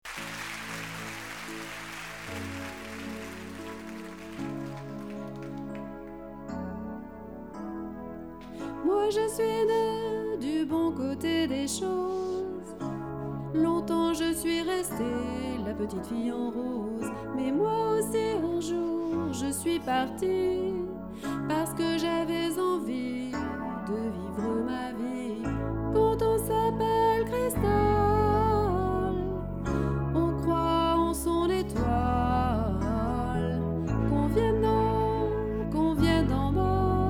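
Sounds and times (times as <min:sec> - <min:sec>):
instrumental music: 0:00.0 - 0:37.0.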